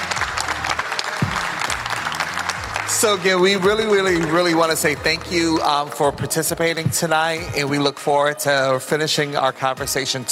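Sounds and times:
audience applause: 0.0 - 6.2
speech: 3.0 - 10.3.

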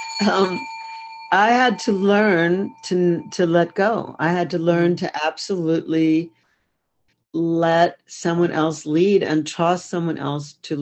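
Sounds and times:
bell ringing: 0.0 - 4.2
speech: 0.2 - 0.7, 1.3 - 6.4, 7.3 - 10.8.

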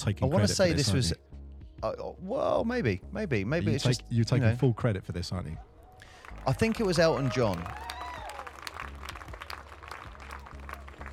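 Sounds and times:
speech: 0.0 - 5.7, 6.4 - 7.9
applause sound effect: 6.0 - 11.1.

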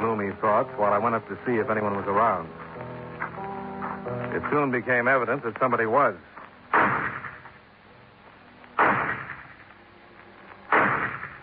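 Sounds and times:
speech: 0.5 - 2.6, 4.1 - 6.8
gunshots from a low barn-like building at the rear of a property: 6.7 - 7.5, 8.8 - 9.7, 10.7 - 11.4.

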